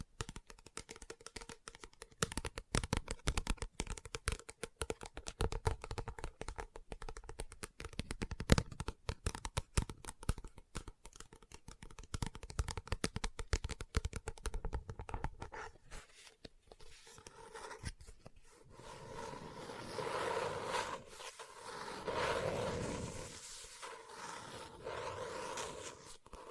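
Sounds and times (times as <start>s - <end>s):
tapping and scratching on a book: 0.3s - 26.5s
soft smooth rustling: 15.5s - 26.5s.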